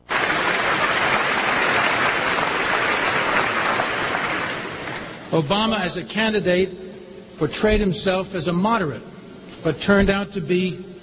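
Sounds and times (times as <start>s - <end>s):
audience applause: 0.0s - 5.3s
speech: 5.3s - 6.8s, 7.4s - 10.9s.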